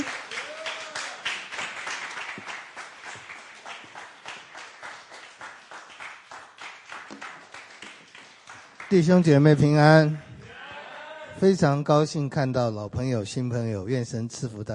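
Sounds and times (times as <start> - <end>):
crowd applause: 0.0 - 9.6
speech: 8.9 - 10.2, 11.4 - 14.7.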